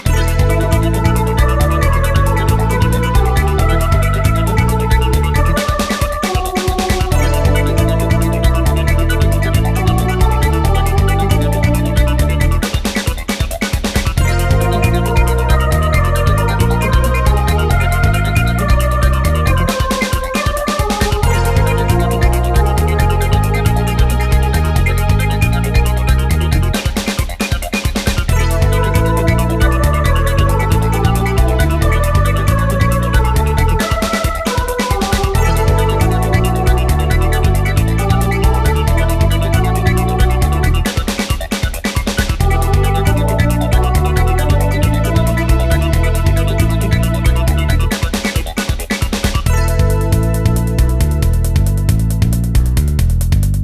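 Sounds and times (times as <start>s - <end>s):
distortion guitar: 0.0s - 53.5s.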